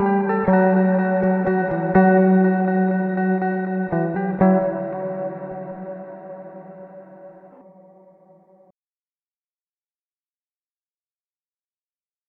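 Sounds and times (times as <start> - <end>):
Mooer R7 X2 modulation guitar effect: 0.0 - 8.7.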